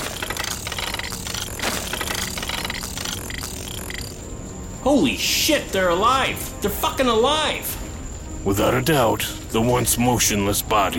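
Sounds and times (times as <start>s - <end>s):
mechanical whirring: 0.0s - 4.3s
speech: 4.8s - 7.8s, 8.4s - 10.9s.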